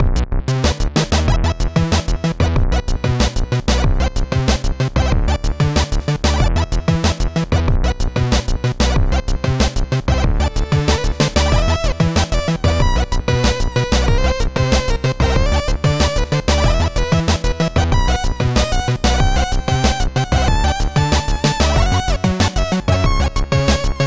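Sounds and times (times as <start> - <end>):
keygen tracker music: 0.5 - 24.0.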